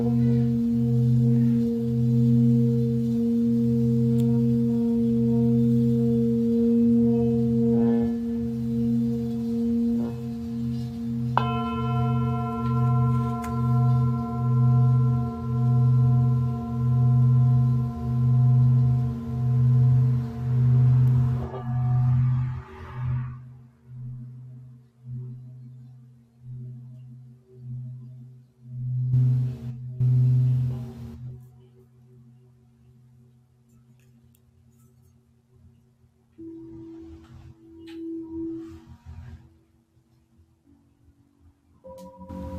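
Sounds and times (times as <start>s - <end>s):
Tibetan singing bowl ringing: 0.0s - 23.5s, 28.8s - 31.3s, 41.8s - 42.5s.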